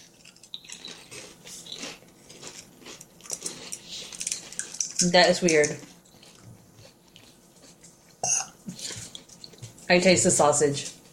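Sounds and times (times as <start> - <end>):
crunching Southern biscuits and gravy flavored potato chips: 0.0 - 7.8
speech: 5.0 - 5.9, 9.9 - 11.0.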